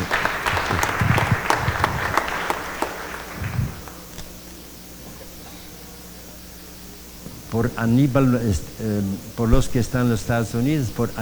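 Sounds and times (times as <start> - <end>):
audience applause: 0.0 - 4.3
laughter: 0.0 - 6.4
speech: 7.6 - 11.2.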